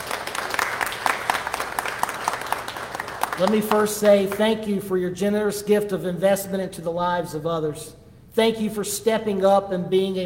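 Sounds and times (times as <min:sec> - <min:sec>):
audience applause: 0:00.0 - 0:03.9
speech: 0:03.4 - 0:10.2.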